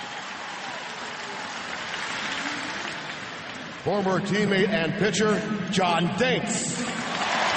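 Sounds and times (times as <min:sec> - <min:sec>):
ballpark crowd applause: 0:00.0 - 0:04.6, 0:06.6 - 0:07.5
speech: 0:03.8 - 0:07.1.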